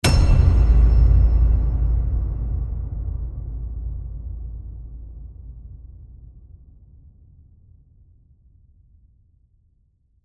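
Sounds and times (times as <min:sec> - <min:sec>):
epic low hit: 0:00.0 - 0:07.2.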